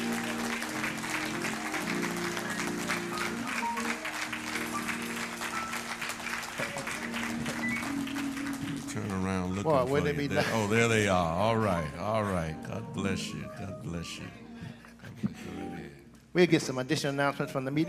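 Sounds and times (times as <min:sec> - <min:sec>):
audience applauding: 0:00.0 - 0:10.2
speech: 0:09.6 - 0:14.4, 0:16.4 - 0:17.8.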